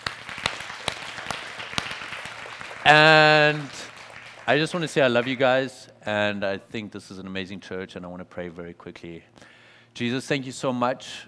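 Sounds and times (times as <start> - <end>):
audience applause: 0.0 - 5.5
speech: 2.9 - 3.8, 4.5 - 11.2.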